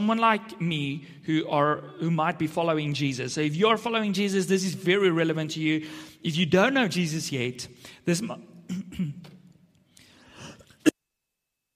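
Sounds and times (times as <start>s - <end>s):
speech: 0.0s - 9.3s
throat clearing from a frog in the throat: 8.7s - 9.5s.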